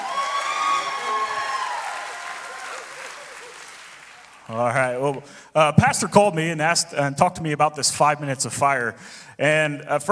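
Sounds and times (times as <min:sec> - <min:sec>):
cheering: 0:00.0 - 0:05.2
audience applause: 0:00.0 - 0:05.3
speech: 0:04.5 - 0:10.1.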